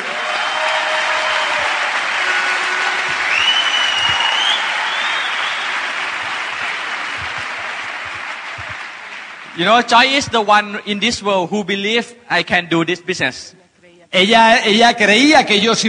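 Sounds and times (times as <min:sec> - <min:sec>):
audience applause: 0:00.0 - 0:10.2
speech: 0:09.6 - 0:15.8.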